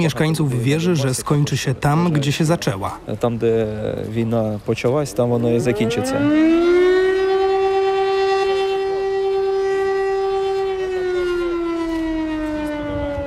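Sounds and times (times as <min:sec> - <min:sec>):
speech: 0:00.0 - 0:06.7
air raid siren: 0:05.4 - 0:13.2.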